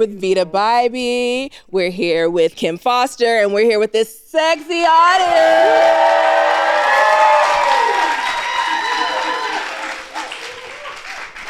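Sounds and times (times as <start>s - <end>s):
speech: 0.0s - 6.3s
audience applause: 5.2s - 11.4s.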